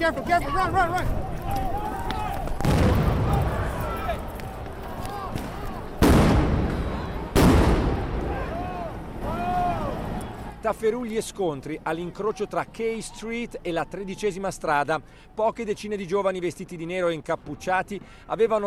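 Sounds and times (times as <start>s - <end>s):
speech: 0.0s - 1.7s, 10.6s - 18.6s
crowd shouting: 0.0s - 6.0s, 6.6s - 10.6s
stun grenade blasts: 6.0s - 8.3s.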